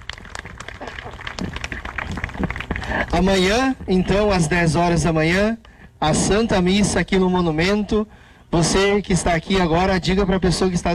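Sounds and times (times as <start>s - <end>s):
audience applause: 0.0s - 3.7s
speech: 3.1s - 10.9s.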